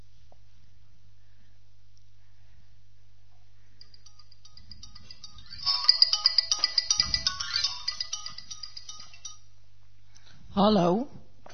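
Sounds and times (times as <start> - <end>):
telephone ringing with electronic trill: 3.8 - 9.4
speech: 10.6 - 11.2.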